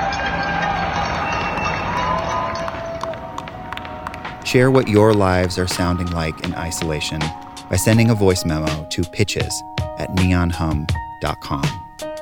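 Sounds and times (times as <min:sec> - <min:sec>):
people clapping from windows at night: 0:00.1 - 0:07.3
speech: 0:04.5 - 0:11.8.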